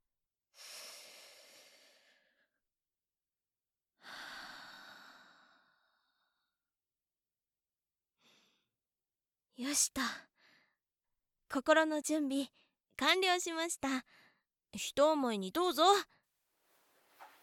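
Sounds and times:
deep breaths: 0:00.6 - 0:02.6, 0:04.0 - 0:06.6
speech: 0:09.6 - 0:10.3, 0:11.5 - 0:16.2.

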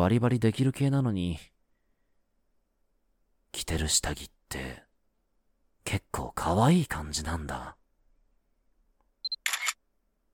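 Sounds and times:
speech: 0:00.0 - 0:01.5, 0:03.6 - 0:04.8, 0:05.8 - 0:07.8
phone camera focus beeps: 0:09.2 - 0:09.8
phone camera shutter burst: 0:09.3 - 0:09.8.

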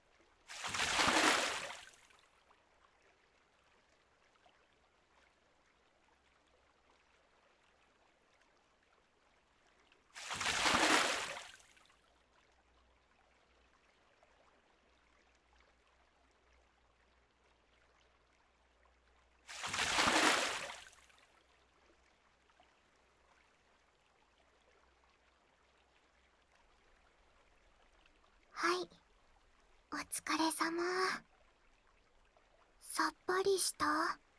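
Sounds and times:
water poured over someone to rinse them off: 0:00.5 - 0:02.1, 0:10.2 - 0:11.7, 0:19.5 - 0:21.1
speech: 0:28.6 - 0:29.0, 0:29.9 - 0:31.3, 0:32.9 - 0:34.2.

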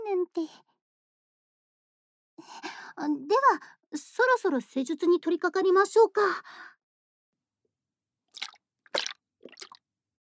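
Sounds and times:
speech: 0:00.4 - 0:00.7, 0:03.0 - 0:06.8
thick gooey liquid dripping: 0:08.4 - 0:09.8.

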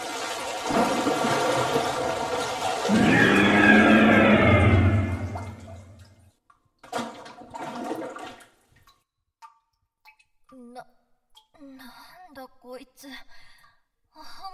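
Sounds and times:
underground cave ambience: 0:00.8 - 0:06.1.

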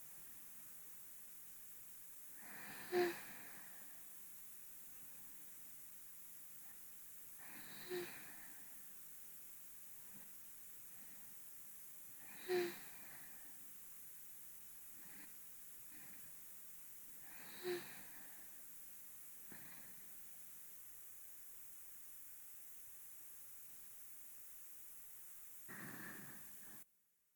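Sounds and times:
binaural sleep breathing: 0:02.4 - 0:04.2, 0:07.4 - 0:08.9, 0:12.2 - 0:13.7, 0:14.9 - 0:16.5, 0:17.2 - 0:18.7, 0:19.4 - 0:20.2, 0:25.7 - 0:26.8.

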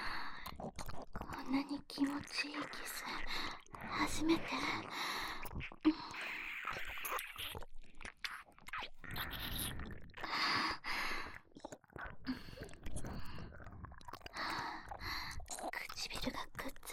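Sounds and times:
oral sex sounds: 0:00.0 - 0:16.9
nipple licking: 0:00.3 - 0:03.9, 0:04.6 - 0:16.9
ear licking: 0:05.4 - 0:16.3.

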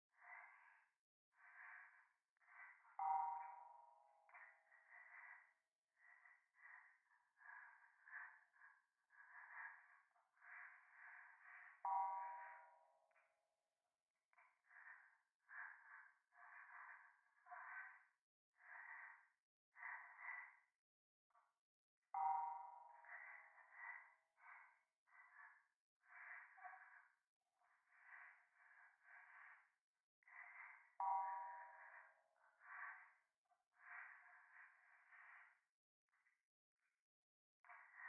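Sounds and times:
pleasant breathing in the right ear: 0:00.1 - 0:13.4, 0:14.3 - 0:20.8, 0:22.2 - 0:37.0, 0:37.6 - 0:38.0.

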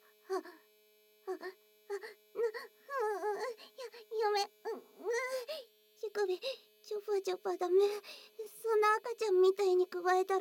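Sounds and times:
vibrator buzzing: 0:01.2 - 0:09.5
whimpering and moaning: 0:01.3 - 0:05.6
speech: 0:01.4 - 0:01.6, 0:07.2 - 0:10.4.

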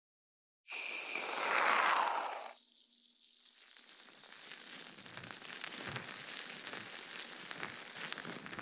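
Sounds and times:
aerosol can spray: 0:00.7 - 0:03.8
carbonated foam crackling fizz: 0:00.7 - 0:08.6.

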